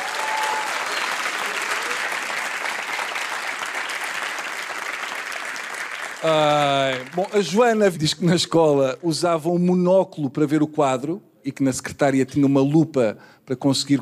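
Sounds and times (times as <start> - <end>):
audience applause: 0.0 - 7.8
speech: 6.2 - 14.0.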